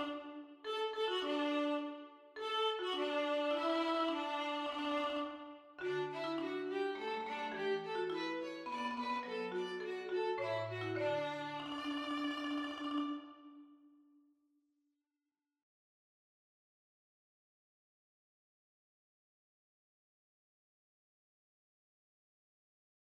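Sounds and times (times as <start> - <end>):
marimba in a duet with violin: 0.0 - 5.0, 5.8 - 13.6
violin in a duet with marimba: 0.0 - 13.8.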